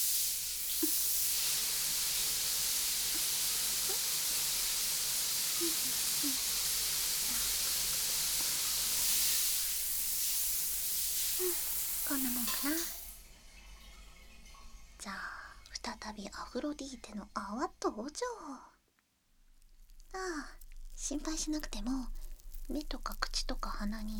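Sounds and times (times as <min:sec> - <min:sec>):
shower water spraying: 0:00.0 - 0:13.4
faint soft splashes and drips: 0:00.0 - 0:15.8
speech: 0:16.1 - 0:18.7, 0:20.1 - 0:24.1.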